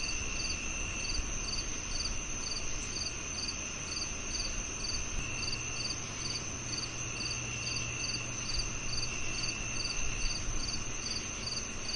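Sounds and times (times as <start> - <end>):
crickets chirping: 0.0 - 11.9
low background hum: 0.0 - 11.9.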